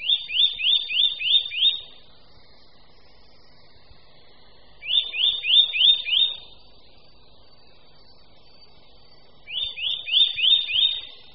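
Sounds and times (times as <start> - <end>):
Eurasian nuthatch calling in whistled notes: 0.0 - 2.1, 4.8 - 6.6, 9.4 - 11.3.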